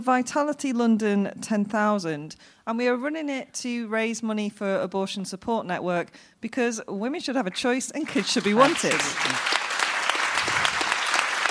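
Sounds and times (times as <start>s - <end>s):
speech: 0.0s - 9.6s
audience clapping: 8.0s - 11.5s.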